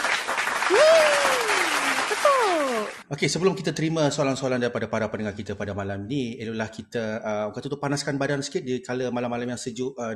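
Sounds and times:
applause: 0.0s - 3.1s
speech: 2.4s - 10.1s.

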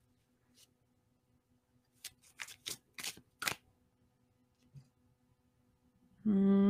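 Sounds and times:
Everyday Witch Tarot cards being shuffled and pulled: 1.9s - 3.6s.

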